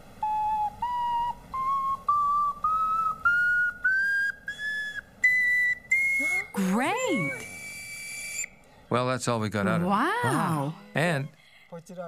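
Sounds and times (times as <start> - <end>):
whistling from air blown through a film-case container with a straw and extra holes: 0.0 - 8.6
speech: 8.9 - 12.0.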